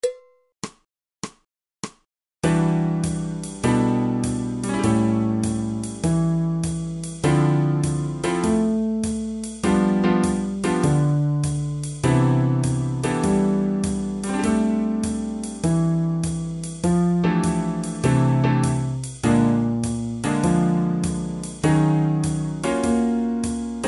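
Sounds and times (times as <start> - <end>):
fretless bass: 2.5 - 23.8.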